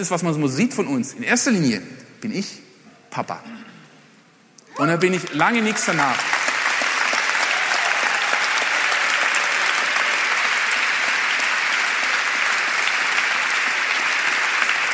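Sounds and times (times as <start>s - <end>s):
speech: 0.0s - 3.7s, 4.8s - 6.3s
audience applause: 4.7s - 14.9s.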